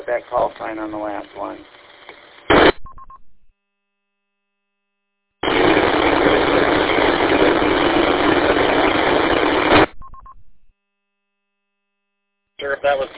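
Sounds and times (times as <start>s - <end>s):
radio repeater static hiss: 0.0s - 2.9s, 5.4s - 10.0s, 12.6s - 13.1s
speech: 0.1s - 1.8s, 13.0s - 13.1s.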